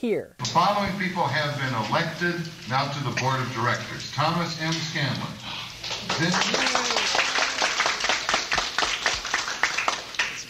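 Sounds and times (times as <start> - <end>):
speech: 0.0 - 7.2
crowd applauding: 5.8 - 10.4.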